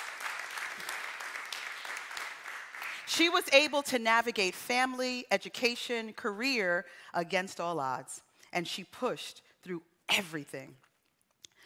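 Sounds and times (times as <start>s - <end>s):
audience clapping: 0.0s - 3.1s
speech: 3.1s - 10.8s.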